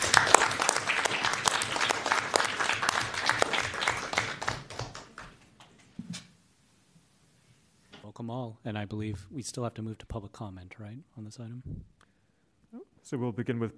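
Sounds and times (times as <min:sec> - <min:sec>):
crowd clapping: 0:00.0 - 0:05.4
speech: 0:08.2 - 0:12.0, 0:12.7 - 0:13.7.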